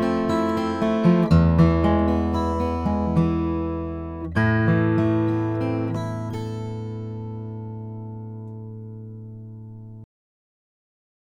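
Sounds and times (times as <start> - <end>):
Martin D-45 Brazilian rosewood acoustic guitar: 0.0 - 10.0.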